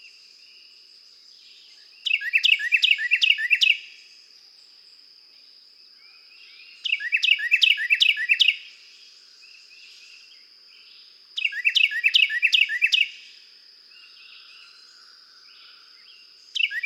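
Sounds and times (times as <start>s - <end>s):
Carolina wren song of rolling whistled phrases: 0.0s - 16.8s.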